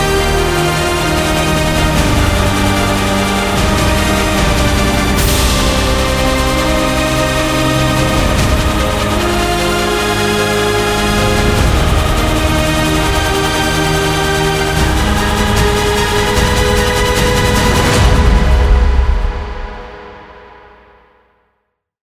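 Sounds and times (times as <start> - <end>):
motivational epic cinematic trailer music: 0.0 - 21.0.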